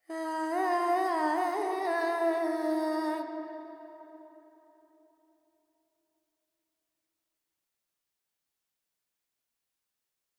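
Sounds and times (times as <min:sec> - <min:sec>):
Carnatic female vocal alap in Phrygian mode: 0:00.0 - 0:03.6.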